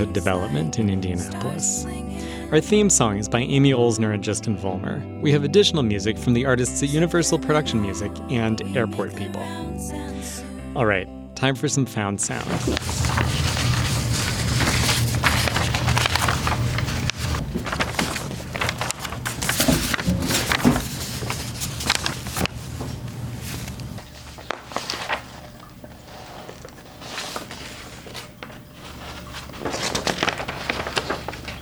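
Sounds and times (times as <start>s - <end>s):
speech: 0.0s - 10.0s, 10.8s - 13.4s
child turning pages of stapled comic books: 12.4s - 31.6s.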